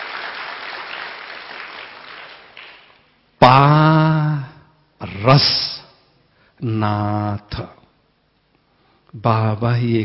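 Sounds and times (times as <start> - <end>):
audience clapping: 0.0 - 3.1
speech: 3.4 - 3.9, 5.2 - 5.7, 6.6 - 7.7, 9.1 - 10.0.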